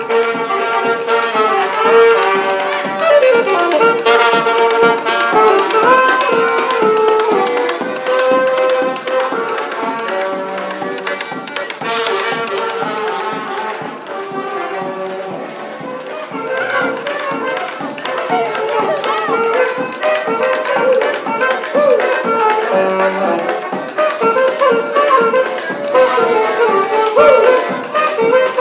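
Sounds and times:
jazz quartet busking in Sandell Street Waterloo: 0.0 - 28.5.

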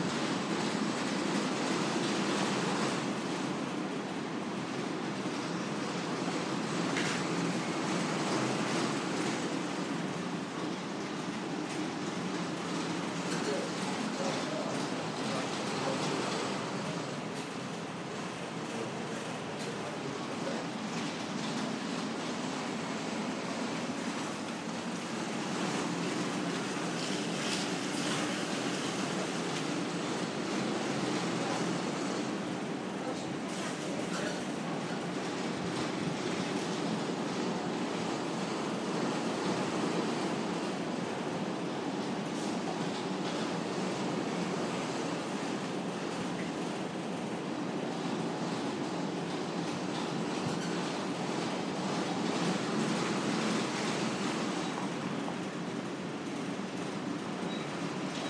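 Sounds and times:
very noisy heater: 0.0 - 58.2.

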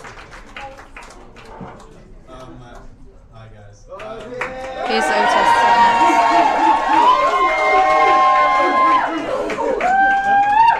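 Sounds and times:
crowd cheering: 4.3 - 10.7.

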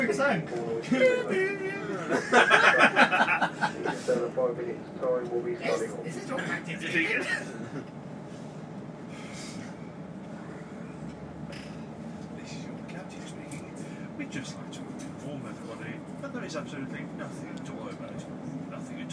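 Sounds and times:
people conversing on a train: 0.0 - 19.1
people laughing on a train: 0.8 - 4.2.

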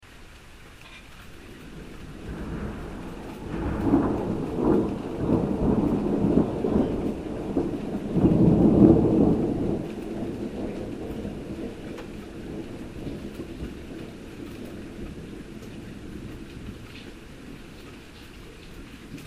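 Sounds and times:
rain: 0.0 - 19.2
thunder: 1.5 - 19.2.

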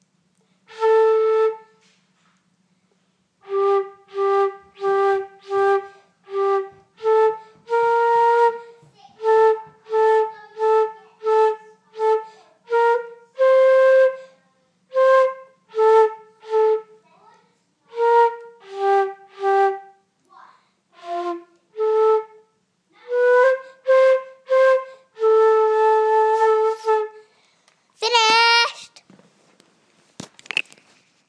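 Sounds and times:
flute practice: 0.7 - 1.8, 3.4 - 14.2, 14.9 - 16.9, 17.9 - 19.9, 21.0 - 22.5, 23.1 - 27.2.

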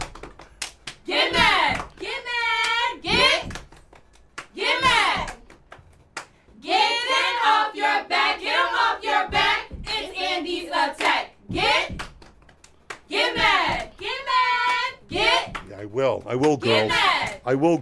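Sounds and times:
rhythmic hand claps: 0.0 - 17.8
cheerleaders chanting a cheer: 1.0 - 3.7, 4.5 - 5.4, 6.5 - 12.1, 13.1 - 15.7, 16.6 - 17.4.

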